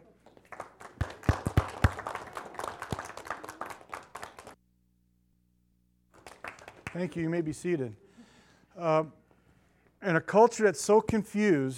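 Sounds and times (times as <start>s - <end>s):
audience applauding: 0.3s - 4.6s, 6.2s - 7.1s
speech: 7.0s - 8.0s, 8.8s - 9.2s, 10.0s - 11.7s.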